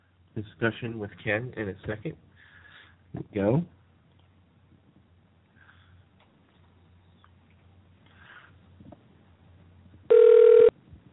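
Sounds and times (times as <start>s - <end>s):
hiss: 0.0s - 11.1s
speech: 0.4s - 2.3s, 3.1s - 3.8s
telephone dialing out beep: 10.1s - 10.7s.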